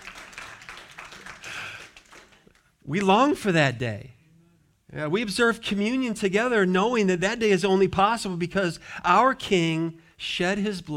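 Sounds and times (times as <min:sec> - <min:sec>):
audience clapping: 0:00.0 - 0:03.4
speech: 0:02.9 - 0:04.2, 0:04.9 - 0:10.9.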